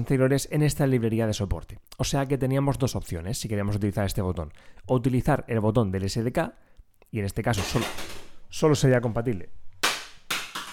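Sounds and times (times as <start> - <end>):
speech: 0.0 - 9.6
small stick-on kitchen light falling and clattering: 7.6 - 8.4.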